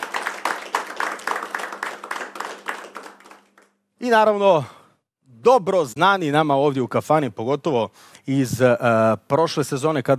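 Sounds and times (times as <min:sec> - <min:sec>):
audience in a kafana clapping for a singer and her band: 0:00.0 - 0:04.3
speech: 0:04.0 - 0:04.8, 0:05.4 - 0:10.1.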